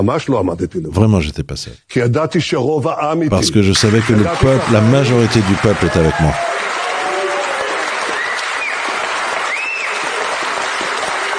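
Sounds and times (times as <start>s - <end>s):
speech: 0.0s - 6.5s
audience applauding: 3.3s - 11.3s.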